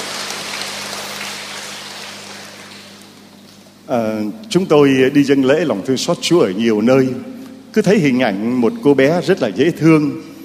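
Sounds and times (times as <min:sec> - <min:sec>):
audience applause: 0:00.0 - 0:03.0
speech: 0:03.9 - 0:10.3.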